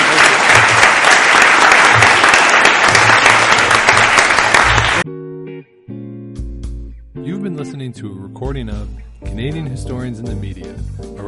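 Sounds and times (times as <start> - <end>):
audience applause: 0.0 - 5.0
speech: 7.9 - 11.2.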